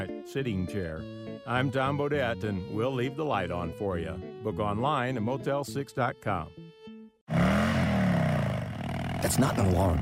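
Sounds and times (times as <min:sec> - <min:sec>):
speech: 0:00.3 - 0:06.6, 0:09.2 - 0:10.0
Harley-Davidson motorcycle engine revving: 0:07.3 - 0:10.0.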